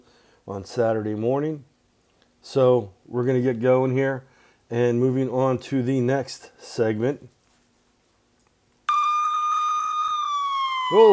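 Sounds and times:
speech: 0.5s - 1.7s, 2.4s - 7.4s, 10.9s - 11.1s
siren sound effect: 8.9s - 11.1s.

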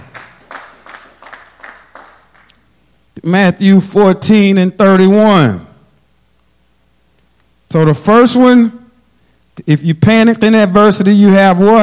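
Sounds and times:
church congregation rhythmic hand clapping: 0.0s - 2.6s
speech: 3.2s - 5.7s, 7.7s - 8.8s, 9.6s - 11.8s.

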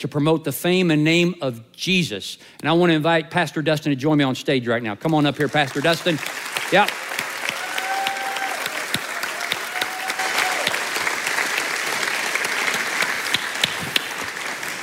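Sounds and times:
speech: 0.0s - 7.0s
audience applause: 5.4s - 14.8s.

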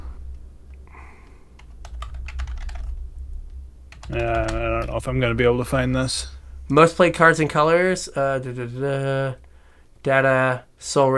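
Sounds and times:
typing on a computer keyboard during a Google search: 1.6s - 3.0s, 3.9s - 4.9s
speech: 4.1s - 9.4s, 10.0s - 11.1s.

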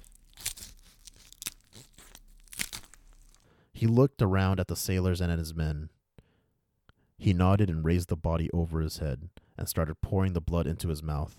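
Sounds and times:
knife cutting off a seagull's head: 0.0s - 3.4s
speech: 3.8s - 6.0s, 7.2s - 11.3s.

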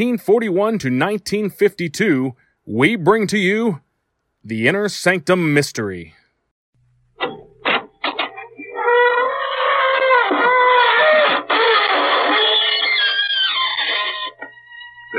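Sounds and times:
speech: 0.0s - 3.8s, 4.4s - 6.2s
creaking door opening: 7.2s - 15.1s.

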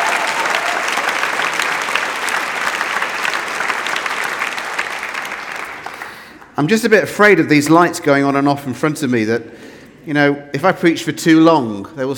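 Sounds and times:
audience applause: 0.0s - 6.6s
speech: 6.6s - 12.1s.

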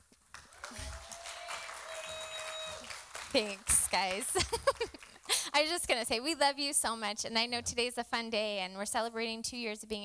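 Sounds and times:
audience clapping: 0.1s - 5.9s
speech: 3.3s - 10.0s
laughter: 4.0s - 5.5s.

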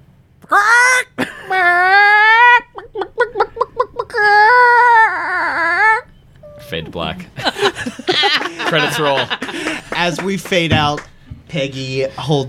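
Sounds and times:
speech: 0.5s - 1.2s, 6.7s - 12.4s
person vocally imitating a monster's horrifying scream: 0.5s - 2.7s, 4.1s - 6.1s
laughter: 1.2s - 5.8s, 6.7s - 11.0s.

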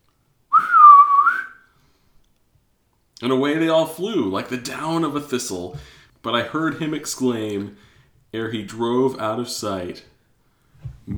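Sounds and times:
whistle: 0.5s - 1.8s
speech: 3.2s - 10.1s.

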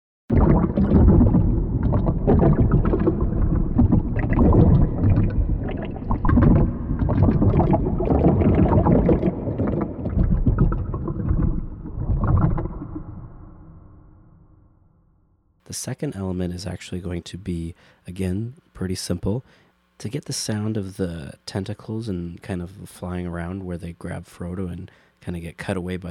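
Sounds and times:
water sloshing and lapping with heavy reverb: 0.3s - 13.1s
speech: 15.8s - 26.1s.

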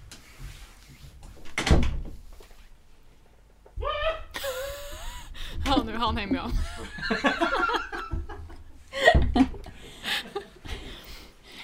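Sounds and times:
door shutting: 1.4s - 2.2s
speech: 5.8s - 7.8s
laughter: 6.7s - 10.7s.

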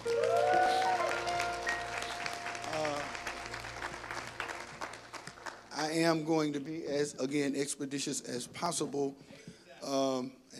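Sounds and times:
audience hand clapping: 0.0s - 6.6s
speech: 6.0s - 10.5s.

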